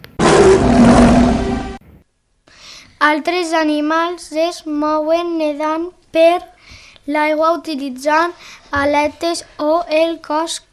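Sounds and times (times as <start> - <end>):
lion roaring: 0.1 - 1.8
speech: 3.0 - 10.7.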